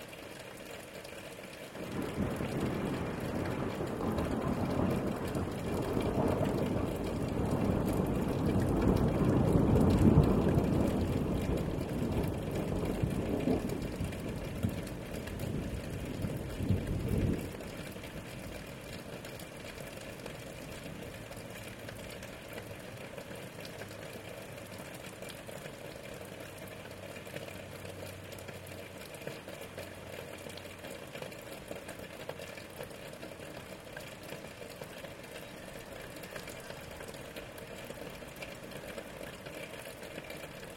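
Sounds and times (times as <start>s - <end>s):
rain: 0.0s - 40.7s
thunder: 1.8s - 17.9s.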